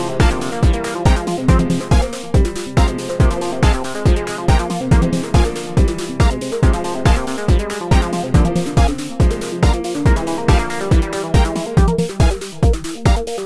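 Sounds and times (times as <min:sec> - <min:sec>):
hopeful ambient music: 0:00.0 - 0:13.4.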